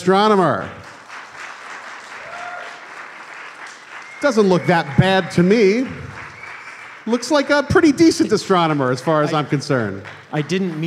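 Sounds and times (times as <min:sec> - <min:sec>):
speech: 0:00.0 - 0:00.8, 0:04.2 - 0:06.1, 0:07.0 - 0:10.8
crowd applauding: 0:00.0 - 0:10.8
faint whistle-like tone: 0:06.2 - 0:07.0.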